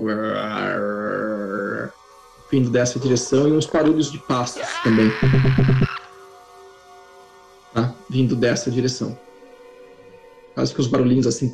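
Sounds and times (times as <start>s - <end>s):
speech: 0.0s - 1.0s, 2.5s - 6.0s, 7.8s - 9.3s, 10.6s - 11.5s
zombie groaning: 0.0s - 2.0s, 3.8s - 6.1s.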